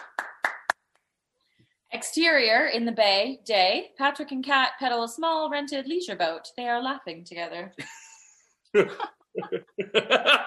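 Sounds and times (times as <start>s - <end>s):
classroom applause: 0.0s - 0.8s
speech: 2.0s - 8.0s, 8.7s - 10.4s
laughter: 7.8s - 8.1s, 8.8s - 10.4s.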